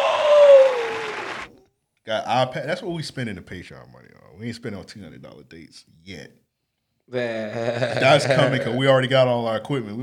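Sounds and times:
canned applause from a soundboard: 0:00.0 - 0:01.6
speech: 0:02.1 - 0:06.4, 0:07.1 - 0:10.0
laughter: 0:07.3 - 0:08.9.

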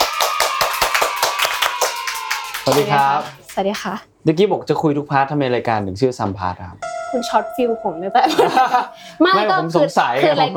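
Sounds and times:
people clapping: 0:00.0 - 0:04.0
speech: 0:02.7 - 0:10.5
laughter: 0:08.2 - 0:09.2.

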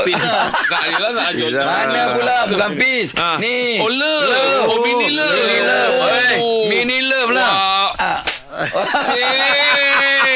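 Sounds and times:
laughter: 0:00.0 - 0:02.7, 0:07.6 - 0:10.3
speech: 0:00.0 - 0:10.3
sharp hand clap or slap: 0:08.2 - 0:08.5
softer smacking sounds: 0:08.2 - 0:08.5.

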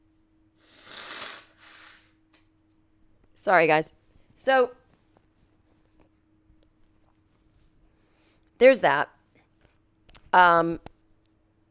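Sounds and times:
person blowing nose: 0:00.6 - 0:02.2
speech: 0:03.4 - 0:04.8, 0:08.6 - 0:09.2, 0:10.3 - 0:10.9.

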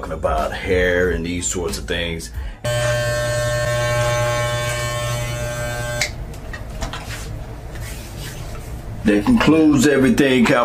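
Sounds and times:
speech: 0:00.1 - 0:03.0, 0:09.0 - 0:10.6
electric clippers trimming a beard: 0:02.7 - 0:06.5.

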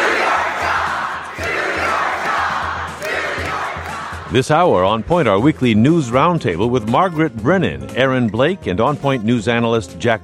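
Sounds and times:
town hall crowd shouting down congressman Jason Chaffetz in Utah: 0:00.0 - 0:04.4
speech: 0:04.3 - 0:10.2.

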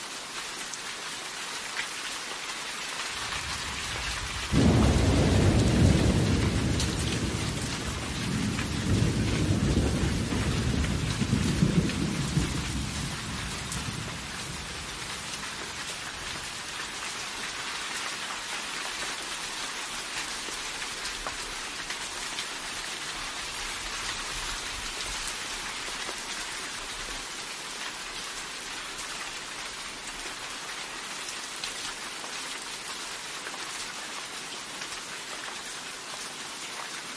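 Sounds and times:
steady rain: 0:00.0 - 0:37.1
deep roll of thunder: 0:03.6 - 0:15.8.

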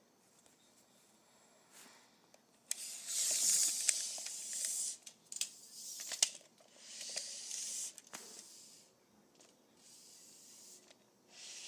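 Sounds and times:
tape measure clicks: 0:02.7 - 0:08.1.

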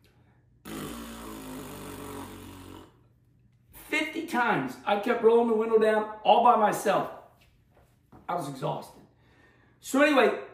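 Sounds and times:
voice imitating a fart with a buzzing raspberry: 0:00.6 - 0:03.1
speech: 0:04.2 - 0:07.2, 0:08.3 - 0:09.0, 0:09.8 - 0:10.4.

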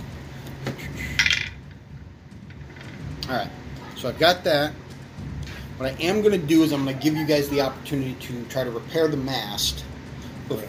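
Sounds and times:
dice being rolled: 0:01.2 - 0:01.8
speech: 0:03.3 - 0:04.8, 0:05.8 - 0:09.9, 0:10.5 - 0:10.6.

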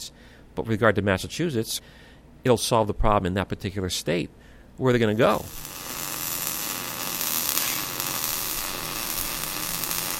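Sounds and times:
speech: 0:00.6 - 0:05.7
electric welding buzz of a flange being welded onto a steel pipe: 0:05.1 - 0:10.1.

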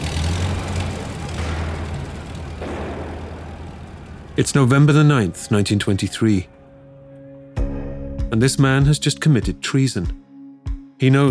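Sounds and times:
1923 getaway car engine rumble speeding off: 0:00.0 - 0:07.3
speech: 0:04.4 - 0:06.6, 0:08.3 - 0:10.2, 0:11.0 - 0:11.2.

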